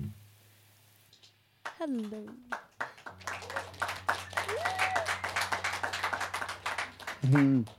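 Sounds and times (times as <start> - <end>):
canned applause from sound box: 1.6 - 7.7
speech: 1.8 - 2.6, 7.2 - 7.7.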